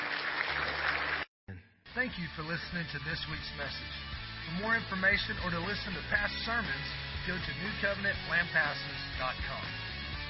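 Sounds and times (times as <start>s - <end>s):
audience hand clapping: 0.0s - 1.3s
speech: 2.0s - 9.9s.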